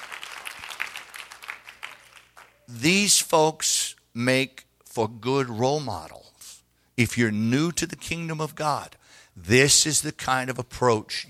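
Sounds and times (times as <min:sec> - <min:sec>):
church congregation hand clapping: 0:00.0 - 0:02.8
speech: 0:02.7 - 0:06.3, 0:07.0 - 0:11.2.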